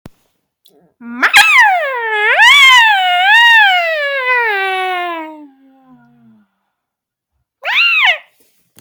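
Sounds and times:
long maah cry: 1.0 - 6.4.

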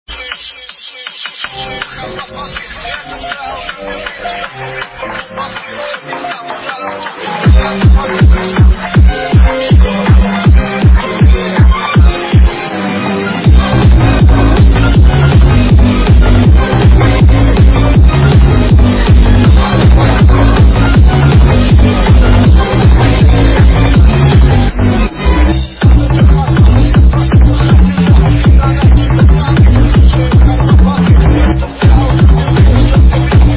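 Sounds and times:
hardbass remix: 0.1 - 33.5.

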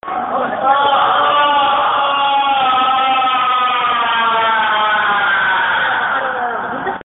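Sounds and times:
person screaming: 0.6 - 6.4.

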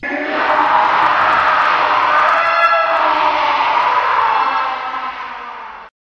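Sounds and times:
person screaming: 0.0 - 5.9.

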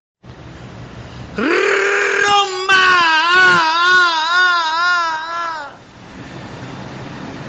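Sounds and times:
person singing ah: 1.4 - 5.8.

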